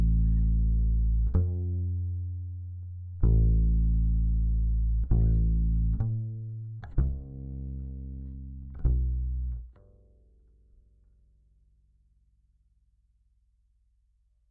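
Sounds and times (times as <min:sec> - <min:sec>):
bass guitar recorded by direct input: 0:00.0 - 0:11.2.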